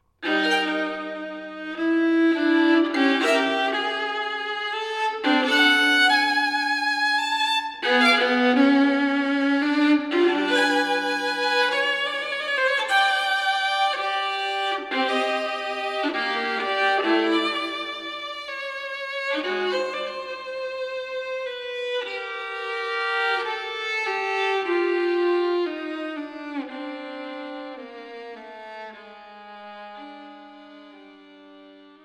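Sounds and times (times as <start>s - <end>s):
violin sonata in G minor: 0.0s - 32.0s.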